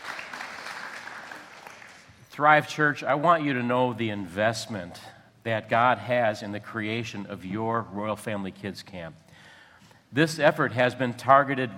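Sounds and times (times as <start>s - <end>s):
audience applause: 0.0s - 2.2s
speech: 2.4s - 9.2s, 10.1s - 11.7s.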